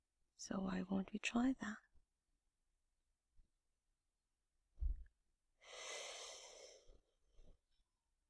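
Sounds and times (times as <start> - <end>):
speech: 0.4 - 1.9
slow breathing in and out in a guided breathing exercise: 5.6 - 7.0.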